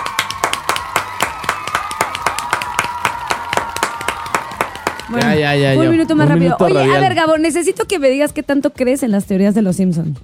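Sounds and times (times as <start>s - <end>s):
applause: 0.0s - 6.2s
speech: 5.1s - 10.2s.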